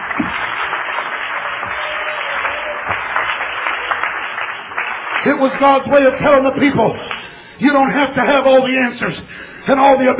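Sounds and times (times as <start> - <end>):
audience clapping hands: 0.0 - 8.1
speech: 5.2 - 10.1.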